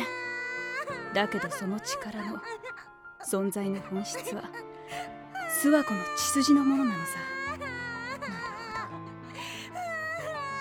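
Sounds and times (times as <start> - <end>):
girl crying with wailing sobs: 0.0 - 2.9, 5.3 - 10.5
speech: 1.1 - 7.4.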